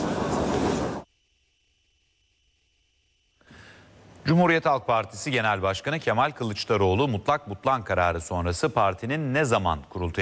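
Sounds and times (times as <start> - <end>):
new metro train rumbling: 0.0 - 1.1
speech: 4.2 - 10.1.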